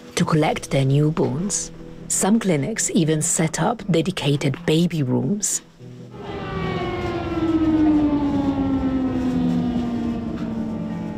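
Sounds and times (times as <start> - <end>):
speech: 0.2 - 5.7
air raid alarm siren wailing: 6.1 - 11.1
broad rumbling background: 6.1 - 11.1.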